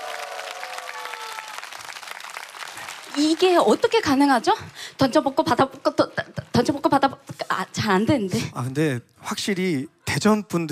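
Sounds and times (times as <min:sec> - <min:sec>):
audience applause: 0:00.0 - 0:06.3
speech: 0:03.0 - 0:10.7.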